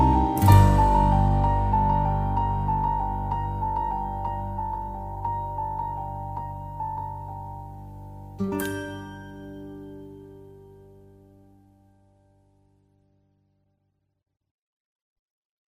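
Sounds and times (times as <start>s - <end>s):
piano carol: 0.0s - 12.0s.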